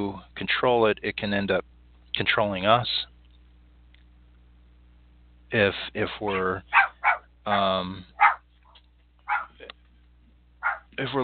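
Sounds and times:
speech: 0:00.0 - 0:03.1, 0:05.5 - 0:06.8, 0:07.4 - 0:08.2, 0:11.0 - 0:11.2
small dog yapping: 0:06.3 - 0:09.6, 0:10.6 - 0:10.9.

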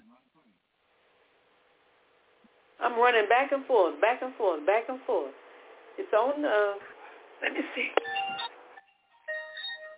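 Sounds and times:
speech: 0:02.8 - 0:05.4, 0:06.0 - 0:08.1
phone ringtone: 0:08.0 - 0:09.9.

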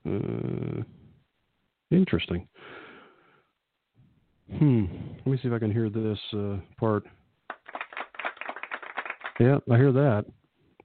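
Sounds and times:
speech: 0:02.1 - 0:02.8, 0:04.5 - 0:07.2, 0:09.4 - 0:10.4
applause: 0:07.5 - 0:09.6.

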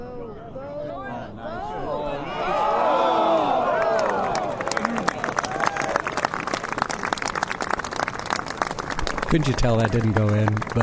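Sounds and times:
golf crowd cheers and murmurs: 0:01.1 - 0:10.8
golf crowd applauding: 0:03.0 - 0:10.8
speech: 0:09.3 - 0:10.8.

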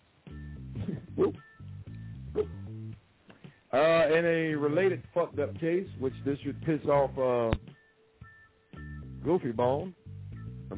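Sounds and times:
dog whining and yipping: 0:01.1 - 0:01.5, 0:02.4 - 0:02.6
speech: 0:03.8 - 0:07.7, 0:09.2 - 0:10.0.

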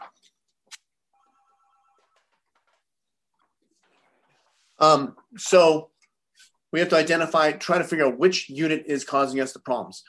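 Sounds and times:
telephone ringing: 0:01.1 - 0:02.8
speech: 0:04.8 - 0:05.9, 0:06.7 - 0:10.0.

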